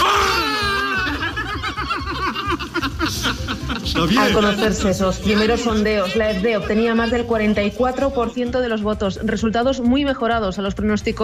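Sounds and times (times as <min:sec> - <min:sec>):
euphoric cheering and shouting of party supporters: 0:00.0 - 0:02.2
laughter: 0:00.1 - 0:08.1
speech: 0:04.0 - 0:11.2.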